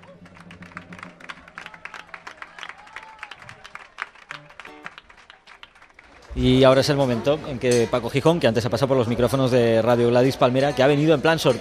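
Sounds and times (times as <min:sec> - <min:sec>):
voices and cheers: 0:00.0 - 0:06.3
audience applause: 0:00.0 - 0:07.2
speech: 0:06.4 - 0:11.5.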